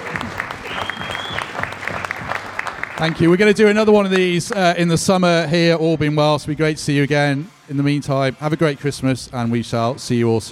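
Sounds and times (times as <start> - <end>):
live audience round of applause: 0.0 - 4.8
speech: 3.0 - 10.5.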